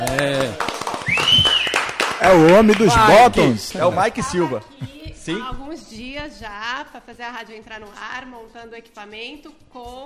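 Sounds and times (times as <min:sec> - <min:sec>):
applause: 0:00.0 - 0:03.5
speech: 0:02.2 - 0:10.0.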